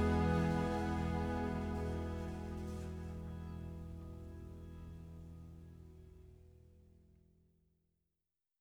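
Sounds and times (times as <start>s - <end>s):
wedding version of a song: 0.0s - 4.2s.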